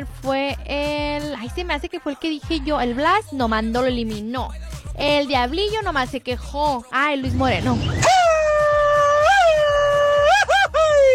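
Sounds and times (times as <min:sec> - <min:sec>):
speech: 0:00.2 - 0:08.2
listener's traditional Mexican grito shout: 0:08.0 - 0:11.1.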